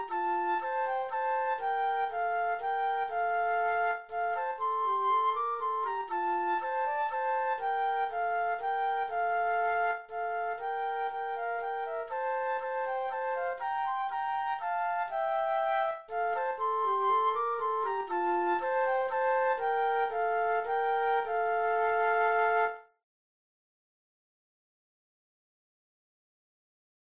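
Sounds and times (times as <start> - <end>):
flute duet: 0.0 - 23.0.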